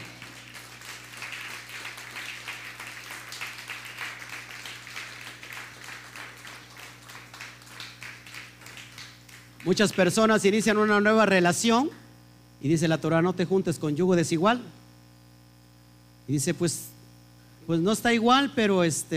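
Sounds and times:
audience applause: 0:00.0 - 0:10.3
low electrical hum: 0:00.0 - 0:19.1
speech: 0:09.6 - 0:12.0, 0:12.6 - 0:14.8, 0:16.3 - 0:16.9, 0:17.7 - 0:19.1.

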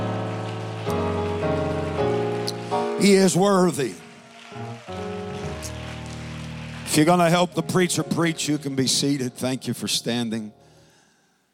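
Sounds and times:
audience clapping hands: 0:00.0 - 0:08.3
speech: 0:03.0 - 0:05.1, 0:06.9 - 0:10.6.

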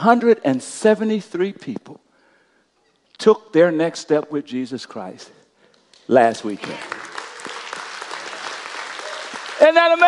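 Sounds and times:
speech: 0:00.0 - 0:02.0, 0:03.2 - 0:05.4, 0:06.1 - 0:06.9, 0:09.7 - 0:10.0
audience clapping: 0:06.2 - 0:10.0.

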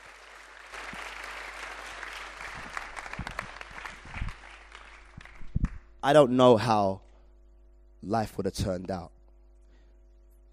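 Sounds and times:
audience applause: 0:00.0 - 0:05.8
speech: 0:06.0 - 0:07.0, 0:08.0 - 0:09.2.

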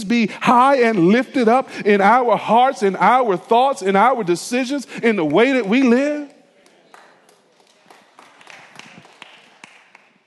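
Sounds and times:
speech: 0:00.0 - 0:06.3
audience clapping: 0:05.1 - 0:10.2.

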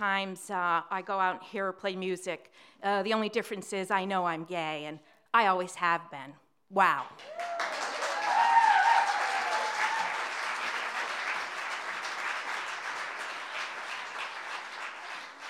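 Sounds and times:
speech: 0:00.0 - 0:07.7
whoop: 0:07.2 - 0:10.5
audience applause: 0:07.2 - 0:15.4.

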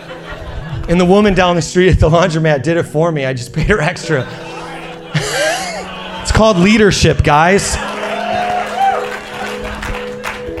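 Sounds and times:
laughter: 0:00.0 - 0:01.3, 0:03.6 - 0:10.5
speech: 0:00.9 - 0:04.6, 0:06.3 - 0:07.9
audience clapping: 0:05.2 - 0:10.5.

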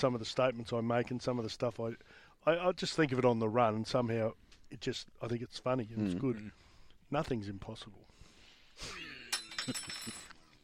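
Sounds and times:
speech: 0:00.0 - 0:08.1, 0:08.8 - 0:10.2
spoon dropping: 0:09.3 - 0:10.3.

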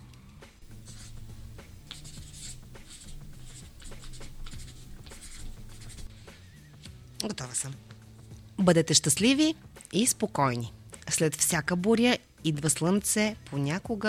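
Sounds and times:
pen writing in a book: 0:00.6 - 0:06.1
speech: 0:07.2 - 0:07.9, 0:08.6 - 0:14.0.

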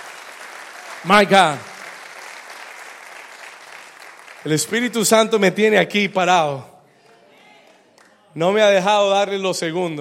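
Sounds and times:
audience applause: 0:00.0 - 0:05.5
speech: 0:01.0 - 0:01.7, 0:04.4 - 0:06.7, 0:08.4 - 0:10.0.

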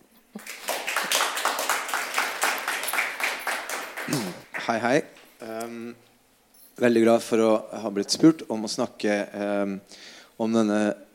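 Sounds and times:
audience applause: 0:00.4 - 0:04.8
speech: 0:04.1 - 0:06.1, 0:06.8 - 0:11.1.

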